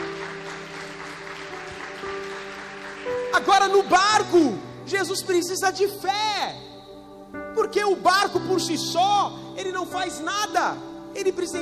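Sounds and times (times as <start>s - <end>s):
crowd audience applause: 0.0s - 3.9s
speech: 3.4s - 6.7s, 7.6s - 11.6s.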